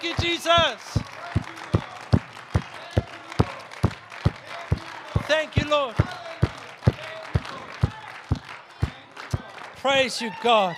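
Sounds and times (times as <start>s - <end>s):
speech: 0.0s - 1.0s, 5.4s - 6.2s, 9.8s - 10.7s
audience clapping in rhythm: 0.0s - 10.4s.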